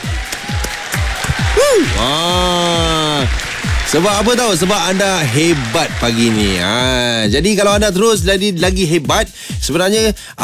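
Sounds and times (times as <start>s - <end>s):
applause: 0.0s - 7.2s
speech: 1.8s - 10.4s.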